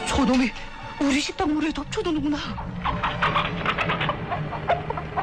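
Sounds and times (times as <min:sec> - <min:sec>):
speech: 0:00.2 - 0:02.7
chickens clucking and squawking in alarm: 0:02.5 - 0:05.2.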